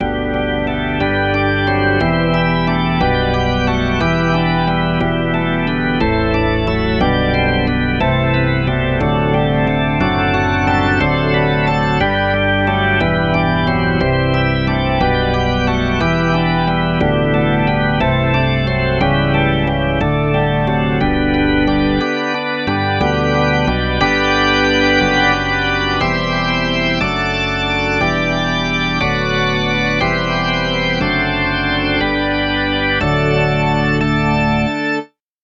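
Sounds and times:
rock organ: 0.0s - 35.1s.

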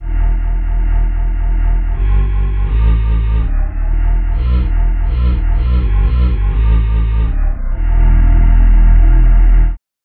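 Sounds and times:
synth voice bass: 0.0s - 9.8s.

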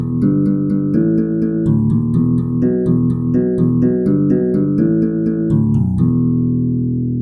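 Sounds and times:
harp bass notes: 0.2s - 7.1s.

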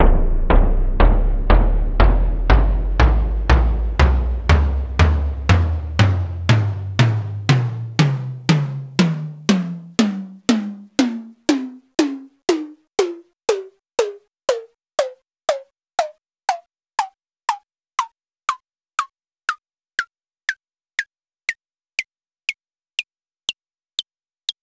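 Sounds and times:
melodic tom scale: 0.0s - 15.2s.

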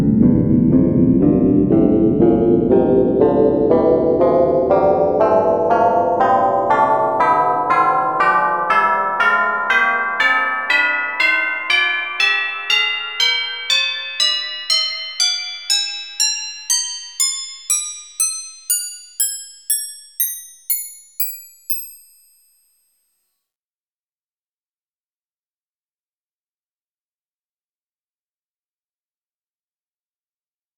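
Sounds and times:
tubular bells scale: 0.2s - 22.7s.

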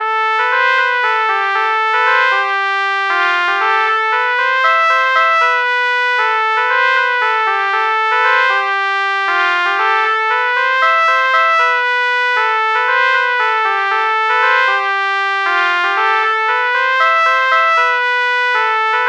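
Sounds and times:
trumpet melody morph with LPC: 0.0s - 19.0s.

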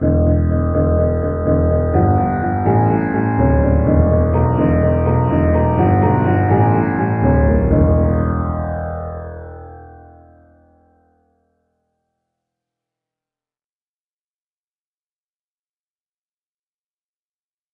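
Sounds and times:
bass: 0.0s - 10.8s
sitar: 0.0s - 11.2s.

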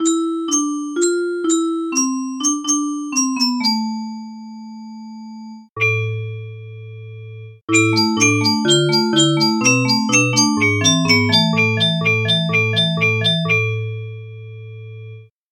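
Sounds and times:
music box: 0.0s - 4.3s, 7.7s - 13.8s.

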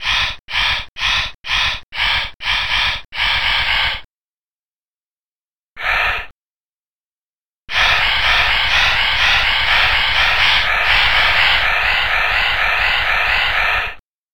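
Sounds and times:
breath noise: 0.0s - 4.1s, 7.7s - 14.0s.

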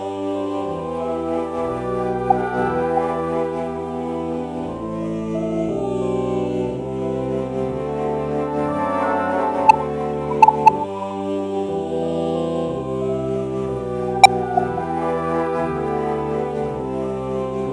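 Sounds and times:
alto flute morphing into oh vowel: 0.1s - 17.7s.

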